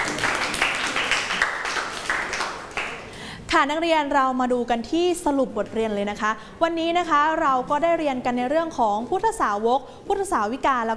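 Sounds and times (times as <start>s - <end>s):
classroom applause: 0.0s - 3.2s
speech: 3.6s - 10.9s.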